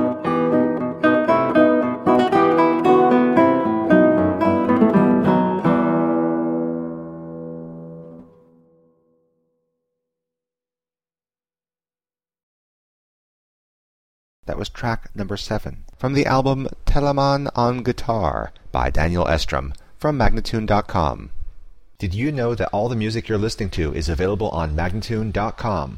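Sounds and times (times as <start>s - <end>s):
guitar playing presto: 0.0s - 9.6s
person speaking: 14.5s - 21.4s, 22.0s - 25.9s.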